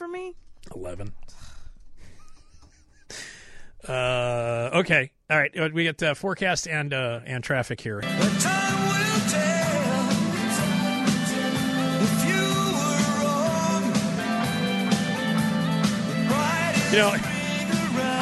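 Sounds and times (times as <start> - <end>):
speech: 0.8 - 1.5, 3.9 - 8.5, 16.9 - 17.3
tv theme song playing: 8.0 - 18.2.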